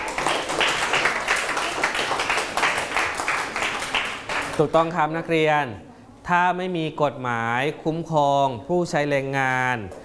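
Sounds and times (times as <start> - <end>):
classroom applause for a student: 0.0 - 5.0
speech: 4.6 - 10.0.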